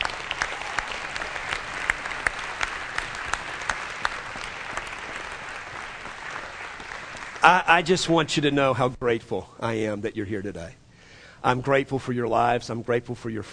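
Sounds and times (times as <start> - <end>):
audience clapping as an offering: 0.0 - 8.2
speech: 7.4 - 10.8, 11.4 - 13.5.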